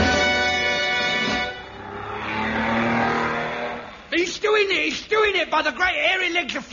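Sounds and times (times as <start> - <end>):
racing car engine roaring during a race: 0.2 - 4.2
speech: 4.9 - 6.7.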